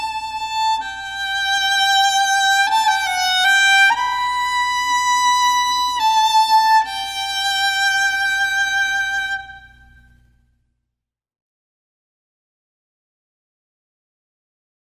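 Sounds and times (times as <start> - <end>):
solo violin: 0.0 - 10.3.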